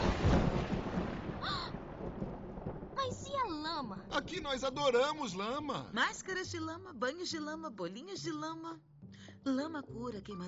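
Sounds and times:
low rolling rumble of thunder: 0.0 - 6.0
steady hiss of rain pouring: 0.0 - 6.0
speech: 3.8 - 10.4.

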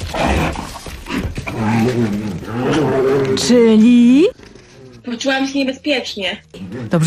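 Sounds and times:
polar bear in Greenland roaring: 0.0 - 5.2
speech: 1.6 - 4.4, 5.0 - 7.0.

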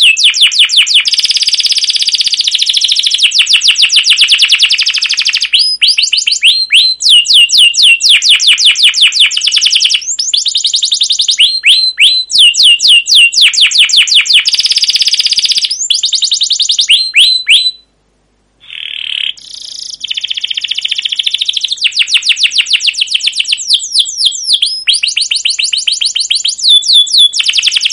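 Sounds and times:
canary song with varied high trills, chirp runs and whistled notes: 0.0 - 18.0, 18.6 - 27.9.

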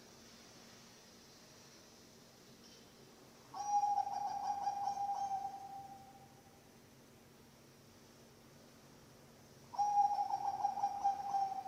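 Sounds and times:
zebra dove cooing: 3.6 - 6.0, 9.8 - 11.6.

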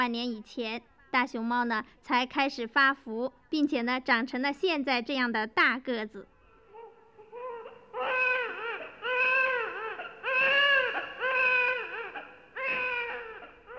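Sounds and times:
speech: 0.0 - 6.3
newborn baby crying: 6.6 - 13.7.

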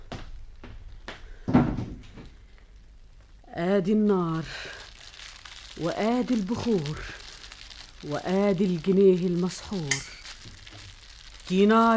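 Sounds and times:
wooden door thud as a door is pulled shut: 1.5 - 2.2
door knocks and creaks: 1.5 - 2.3
speech: 3.6 - 4.7, 5.8 - 7.2, 8.0 - 10.2, 11.5 - 11.9.

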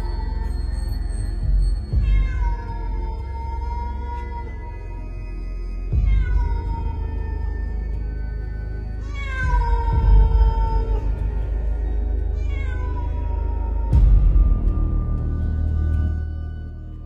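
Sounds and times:
cat wailing mournfully: 0.0 - 16.8.

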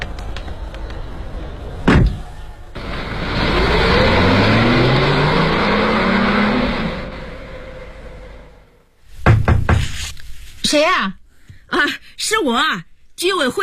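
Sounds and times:
loud car engine revving and droning: 1.9 - 8.9
neighborhood residents' committee director rapping on a door: 9.3 - 9.9
speech: 11.7 - 13.6.

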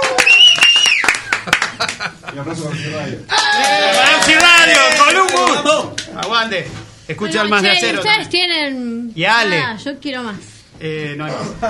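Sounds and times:
audience clapping at a metal music event: 0.0 - 2.1, 3.3 - 6.5
speech: 2.0 - 11.6.

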